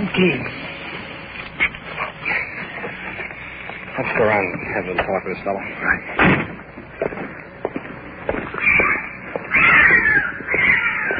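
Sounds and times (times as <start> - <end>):
speech: 0.1 - 0.6, 4.0 - 6.4
cat yowling: 8.6 - 11.1.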